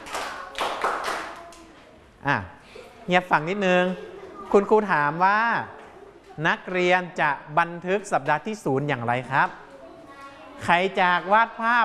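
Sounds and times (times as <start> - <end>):
group of children clapping in unison: 0.0 - 1.7
speech: 2.2 - 5.8, 6.4 - 9.6, 10.6 - 11.8.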